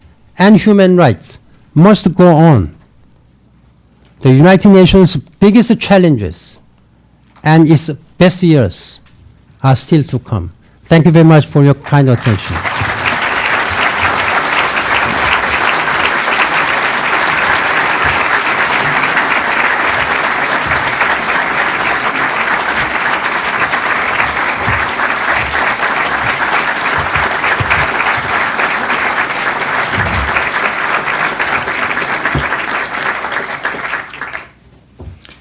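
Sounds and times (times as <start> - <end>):
speech: 0.4 - 2.8, 4.2 - 6.6, 7.4 - 9.0, 9.6 - 12.8
large audience applause after speech: 11.9 - 34.6.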